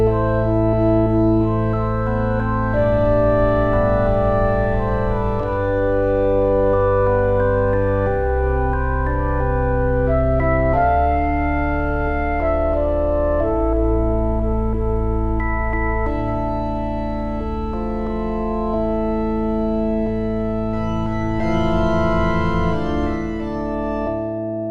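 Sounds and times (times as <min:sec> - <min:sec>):
trio organ playing: 0:00.0 - 0:24.6.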